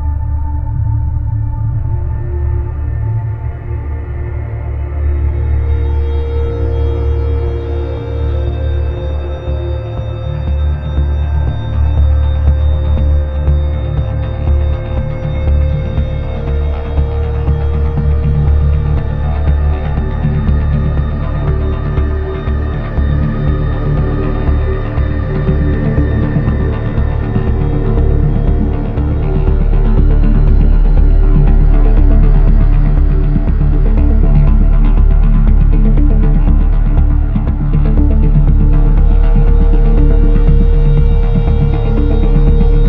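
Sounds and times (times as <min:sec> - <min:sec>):
electro music: 0:00.1 - 0:42.8.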